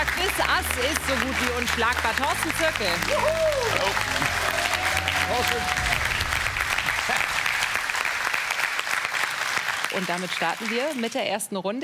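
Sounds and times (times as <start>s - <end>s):
audience applause: 0.0s - 11.3s
speech: 0.4s - 6.0s, 9.9s - 11.8s
audience cheering: 1.2s - 10.6s.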